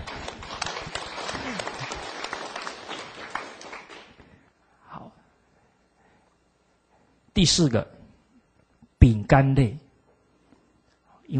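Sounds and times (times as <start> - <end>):
audience applause: 0.0 - 4.2
speech: 7.4 - 8.0, 9.3 - 9.8.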